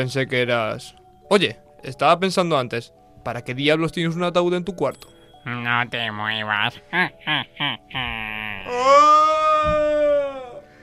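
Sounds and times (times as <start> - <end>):
speech: 0.0 - 9.8
deep loud scream: 8.1 - 10.7.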